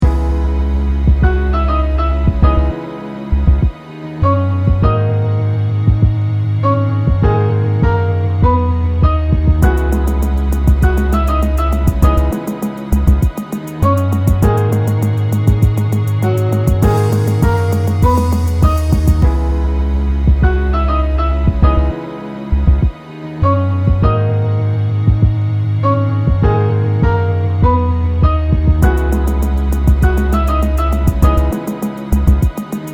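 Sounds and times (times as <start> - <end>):
slow instrumental music: 0.0 - 32.9.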